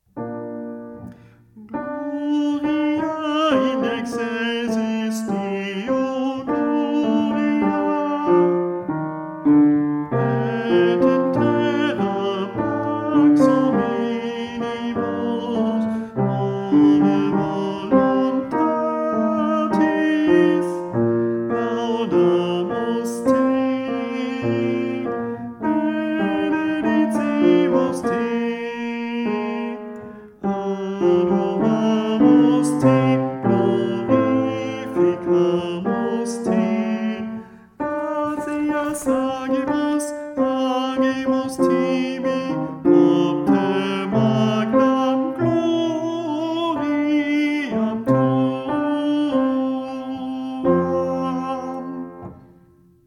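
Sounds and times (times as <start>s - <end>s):
tenor singing: 0.4s - 53.0s.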